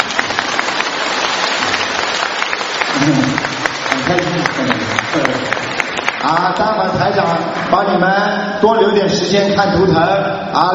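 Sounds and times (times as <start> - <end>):
sustained audience applause: 0.0 - 6.8
speech: 3.0 - 3.5, 4.1 - 5.6, 6.2 - 10.7.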